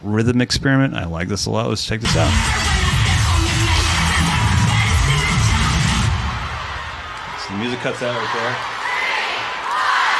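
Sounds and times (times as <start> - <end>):
speech: 0.0 - 2.8, 7.5 - 8.8
huge crowd of cheerleaders chanting and counting: 2.1 - 10.1.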